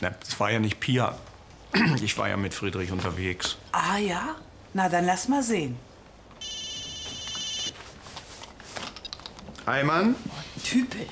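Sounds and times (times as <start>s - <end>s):
speech: 0.0s - 6.6s, 9.7s - 11.1s
telephone ringing: 6.4s - 7.8s.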